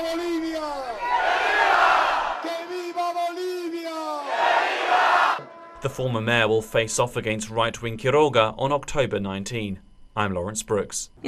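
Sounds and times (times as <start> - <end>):
crowd cheering: 0.0 - 5.8
voices chanting in long shouted syllables: 0.9 - 5.8
speech: 5.8 - 11.2.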